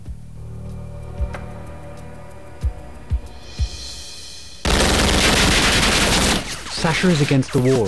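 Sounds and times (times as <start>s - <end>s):
continuous gunfire burst: 4.6s - 7.8s
gunshots as a gunman fires on a door inside an infirmary: 4.6s - 7.8s
speech: 6.8s - 7.8s.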